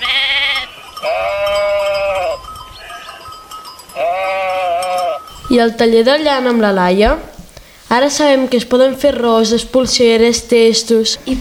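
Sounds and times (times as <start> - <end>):
flock of sheep bleating: 0.0 - 3.3, 4.0 - 5.3
speech: 5.5 - 7.3, 7.9 - 11.3.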